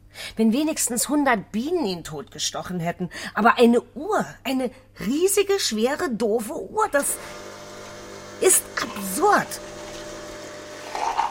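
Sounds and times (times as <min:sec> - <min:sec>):
speech: 0:00.4 - 0:07.4, 0:08.4 - 0:09.7
coffee vending machine dispensing: 0:07.2 - 0:11.2.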